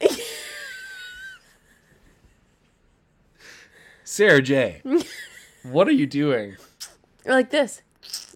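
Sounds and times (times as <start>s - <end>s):
speech: 4.1s - 8.3s
voice imitating teeth sucking: 6.8s - 7.0s, 8.0s - 8.3s.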